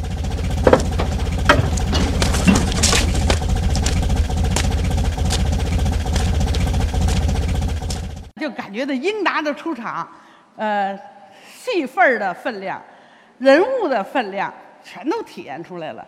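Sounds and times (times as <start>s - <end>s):
creaks and clicks of the jeep body: 0.0s - 8.3s
jeep engine idling: 0.0s - 8.3s
speech: 8.7s - 16.0s.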